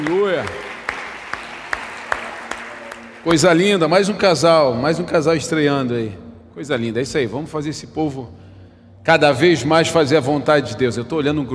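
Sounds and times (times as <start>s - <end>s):
speech: 0.0s - 0.6s, 3.2s - 11.5s
audience applause: 0.0s - 3.9s.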